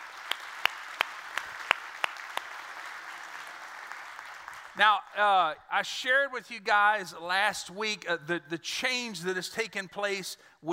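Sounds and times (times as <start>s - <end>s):
scattered applause: 0.0s - 5.1s
crowd clapping in steady rhythm: 0.0s - 5.2s
speech: 4.8s - 10.7s.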